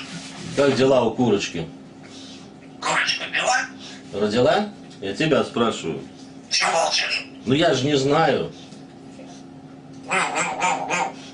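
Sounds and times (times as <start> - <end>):
speech: 0.6 - 1.8, 4.1 - 8.6
grey parrot squawking: 2.8 - 3.8, 6.5 - 7.4, 10.0 - 11.3.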